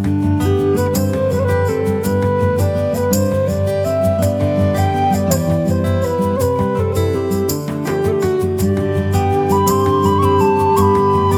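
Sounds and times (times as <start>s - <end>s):
background music for a coal mine town: 0.1s - 11.3s.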